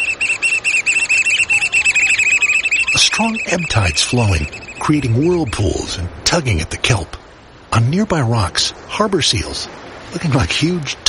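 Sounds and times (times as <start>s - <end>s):
black oystercatcher piping call: 0.0s - 5.9s
speech: 3.2s - 7.2s, 7.8s - 11.0s.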